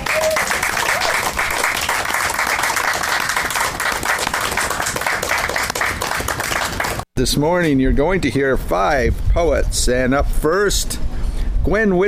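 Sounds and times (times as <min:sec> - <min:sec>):
audience applause at a poetry reading: 0:00.0 - 0:07.1
speech: 0:07.2 - 0:11.0, 0:11.6 - 0:12.0.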